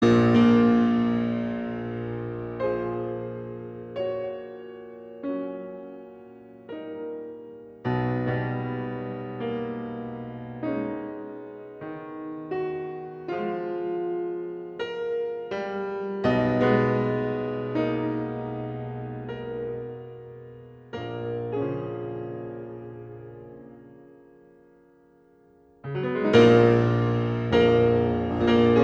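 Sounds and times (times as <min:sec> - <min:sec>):
piano sonata: 0:00.0 - 0:28.8.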